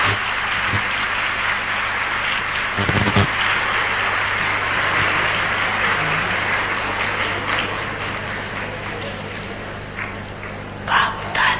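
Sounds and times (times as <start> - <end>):
people clapping: 0.0 - 11.4.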